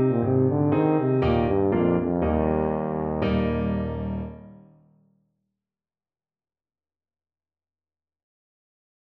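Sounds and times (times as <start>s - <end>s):
tuba: 0.0s - 4.4s.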